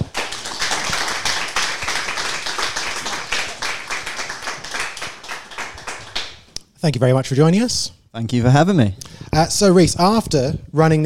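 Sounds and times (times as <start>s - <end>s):
studio audience applause welcoming a guest onto a show: 0.0s - 6.5s
speech: 6.8s - 11.0s.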